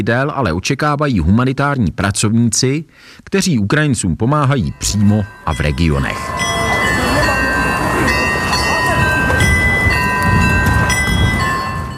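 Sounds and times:
speech: 0.0s - 6.5s
town hall carillon chiming the hour: 4.4s - 11.9s.

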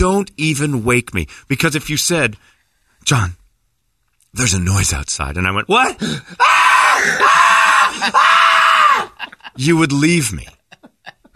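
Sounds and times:
speech: 0.0s - 3.4s, 4.3s - 10.6s
man screaming at the top of his lungs: 5.7s - 9.3s
laughter: 7.8s - 11.3s.

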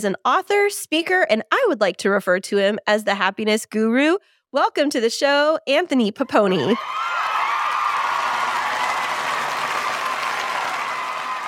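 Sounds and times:
speech: 0.0s - 7.1s
talk show studio audience applause: 6.8s - 11.4s.

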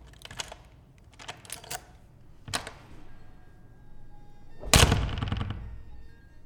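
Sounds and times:
skeleton key rattling and clicking in a lock: 0.0s - 2.8s
door swinging open with a clunk and scraping rush: 4.6s - 5.9s.

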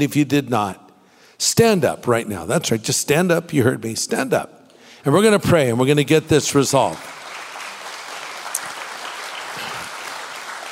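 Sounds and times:
speech: 0.0s - 0.8s, 1.4s - 7.2s
crowd clapping: 6.6s - 10.7s.

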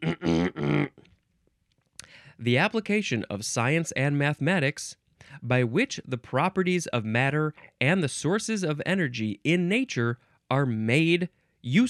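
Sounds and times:
small burp: 0.0s - 1.1s
speech: 2.4s - 11.8s.

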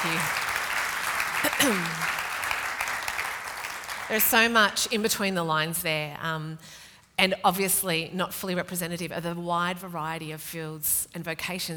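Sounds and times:
speech: 0.0s - 0.4s, 1.4s - 2.2s, 4.1s - 11.7s
applause: 0.0s - 5.1s.

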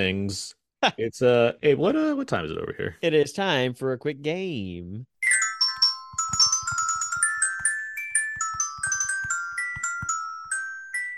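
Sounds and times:
speech: 0.0s - 5.1s
chiming bell jingle: 5.2s - 11.1s.

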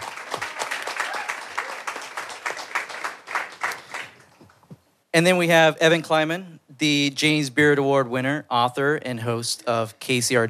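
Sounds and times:
audience applause: 0.0s - 4.4s
speech: 5.2s - 10.4s.

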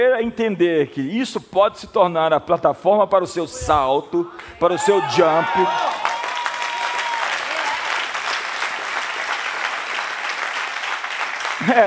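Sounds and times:
speech: 0.0s - 6.0s, 11.7s - 11.8s
audience applause: 5.1s - 11.8s.

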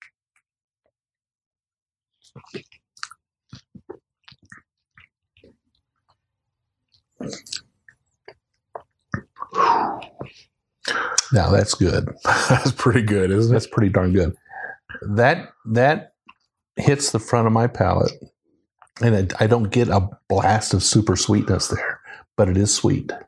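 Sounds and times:
mouth clicks and lip smacks while tasting bourbon: 2.2s - 6.2s, 6.9s - 11.4s, 16.2s - 16.6s
speech: 2.3s - 2.8s, 10.9s - 16.1s, 16.8s - 18.3s, 19.0s - 23.2s
slurping sips of bourbon: 8.8s - 11.3s.

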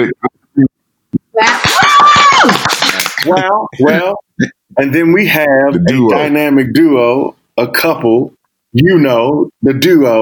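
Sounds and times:
hand clapping: 1.5s - 3.4s
speech: 3.3s - 10.2s.

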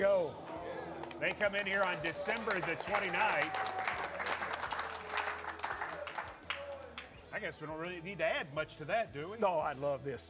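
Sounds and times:
speech: 0.0s - 0.5s, 1.2s - 3.7s, 7.3s - 10.2s
crowd applause: 0.9s - 7.1s.

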